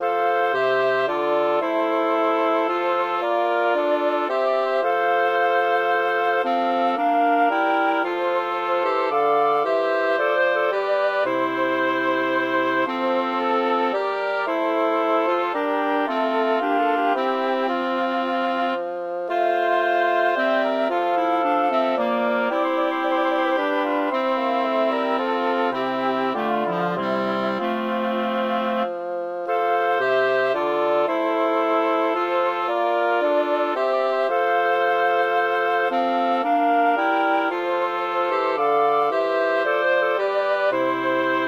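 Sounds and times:
woodwind quartet playing: 0.0s - 41.4s.

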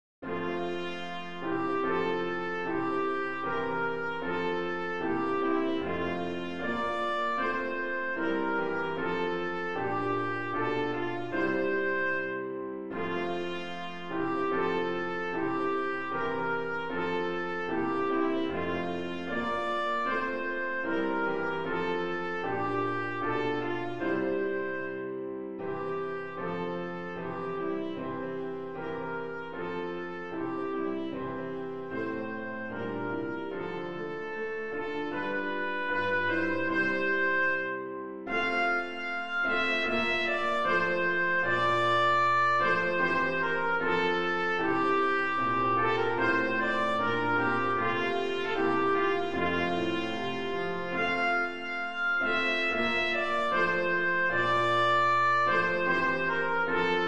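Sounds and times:
national anthem music: 0.2s - 57.0s.

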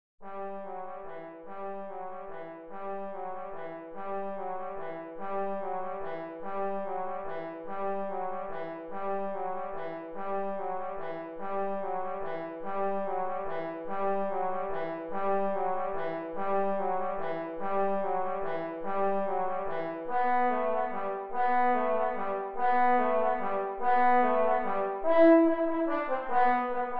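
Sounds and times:
carol melody: 0.2s - 26.9s.

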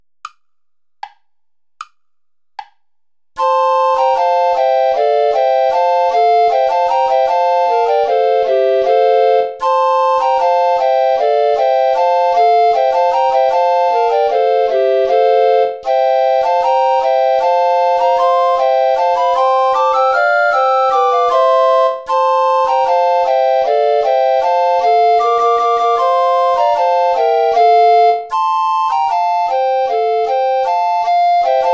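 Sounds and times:
play-along backing track without guitar: 0.0s - 31.7s.

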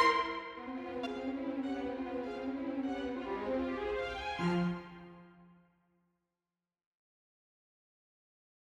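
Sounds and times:
string quartet: 0.0s - 5.5s.

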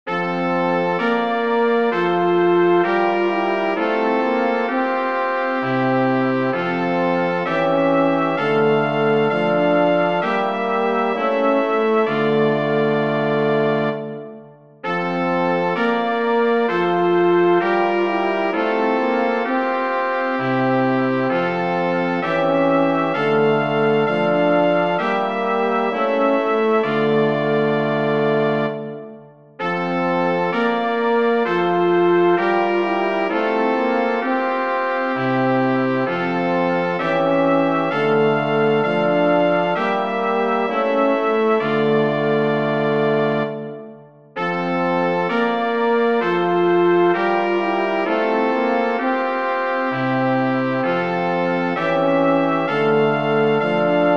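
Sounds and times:
chorale for brass quartet: 0.1s - 54.1s.

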